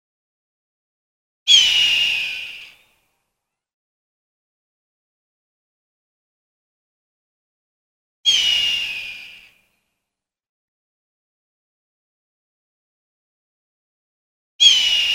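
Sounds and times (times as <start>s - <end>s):
hawk giving a raspy drawn-out scream: 1.5s - 2.8s, 8.3s - 9.5s, 14.6s - 15.1s.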